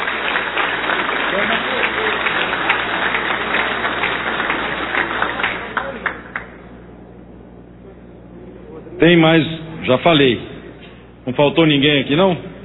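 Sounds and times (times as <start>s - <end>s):
audience applause: 0.0s - 6.7s
speech: 9.0s - 10.5s, 11.2s - 12.5s.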